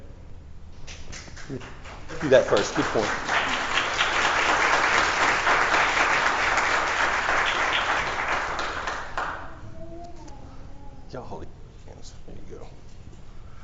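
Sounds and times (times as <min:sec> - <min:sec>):
crowd applauding: 0:00.9 - 0:09.6
speech: 0:01.5 - 0:03.4.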